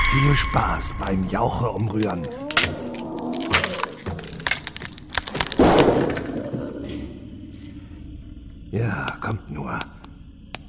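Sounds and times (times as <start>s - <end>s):
speech: 0.1s - 2.4s, 8.7s - 10.0s
lamp being smashed during a fight: 3.5s - 6.7s.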